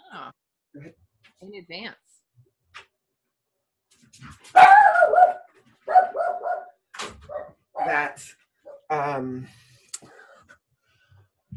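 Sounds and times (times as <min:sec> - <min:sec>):
speech: 0:00.2 - 0:02.2, 0:07.9 - 0:09.6
dog barking as someone enters: 0:04.5 - 0:08.9.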